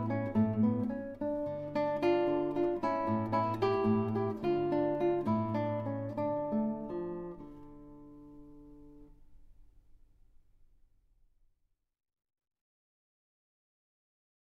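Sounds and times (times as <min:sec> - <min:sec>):
allegretto guitar piece: 0:00.0 - 0:09.7.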